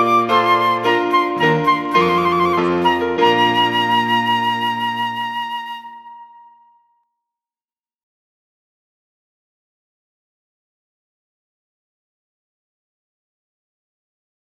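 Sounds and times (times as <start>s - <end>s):
trumpet piece: 0.0s - 6.8s.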